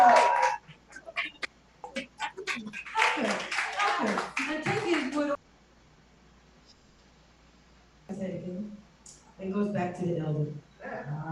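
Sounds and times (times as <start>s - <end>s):
audience applause: 0.0s - 0.6s, 1.2s - 5.4s
voices and cheering: 0.0s - 0.6s, 1.2s - 5.4s
speech: 9.9s - 11.2s.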